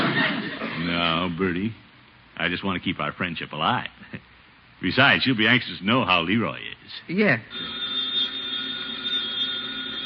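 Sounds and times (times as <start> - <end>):
laughter: 0.0 - 0.9
speech: 1.3 - 7.8
telephone ringing: 7.5 - 10.0.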